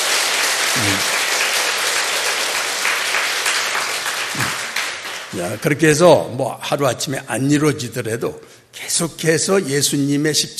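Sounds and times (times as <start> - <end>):
audience applause: 0.0 - 5.4
speech: 0.8 - 1.2, 5.4 - 10.5.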